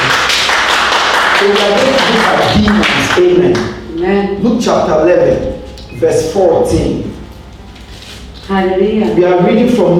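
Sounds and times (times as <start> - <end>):
audience clapping: 0.0 - 3.8
speech: 1.4 - 7.2, 8.5 - 9.9.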